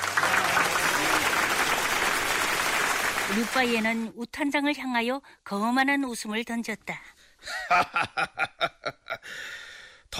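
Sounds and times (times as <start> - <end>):
crowd applauding: 0.0 - 4.0
speech: 3.3 - 9.6
laughter: 7.5 - 9.3.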